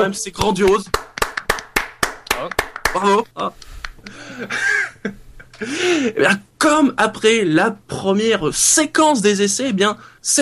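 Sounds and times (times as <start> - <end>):
speech: 0.0 - 1.1, 2.4 - 10.3
sharp rhythmic clapping: 0.0 - 4.1.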